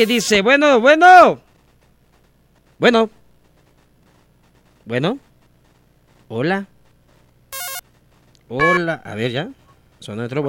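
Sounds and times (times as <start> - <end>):
speech: 0.0 - 1.5, 2.8 - 3.2, 4.9 - 5.3, 6.3 - 6.7, 8.5 - 10.4
incoming telephone call electronic ringtone: 7.6 - 7.8.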